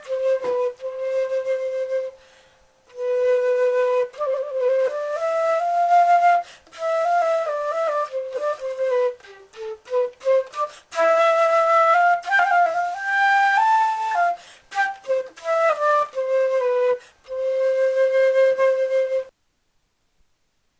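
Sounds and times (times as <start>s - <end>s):
flute solo: 0.0s - 19.3s.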